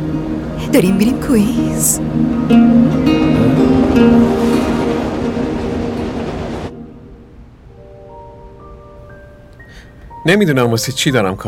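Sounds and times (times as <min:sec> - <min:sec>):
New York subway train rumble heading to Roosevelt Island and Queens: 0:00.0 - 0:09.0
subway train sustained tonal whine: 0:00.0 - 0:09.0
speech: 0:00.7 - 0:04.6, 0:10.3 - 0:11.4.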